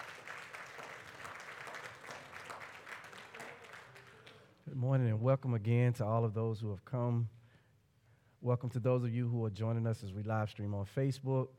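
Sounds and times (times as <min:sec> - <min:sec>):
audience clapping hands in praise: 0:00.0 - 0:04.6
speech: 0:04.7 - 0:07.4, 0:08.4 - 0:11.5.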